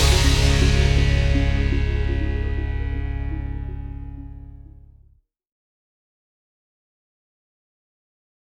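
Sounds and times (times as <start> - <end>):
instrumental music: 0.0 - 5.1.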